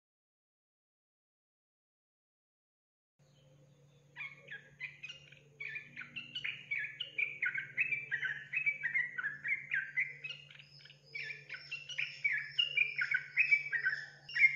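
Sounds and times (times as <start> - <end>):
Yellow-vented Bulbul song: 3.2 - 14.5.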